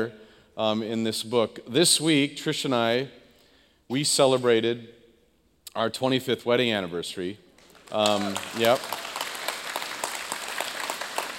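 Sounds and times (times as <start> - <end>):
speech: 0.0 - 3.2, 3.9 - 5.0, 5.8 - 9.0
audience applause: 7.6 - 11.3.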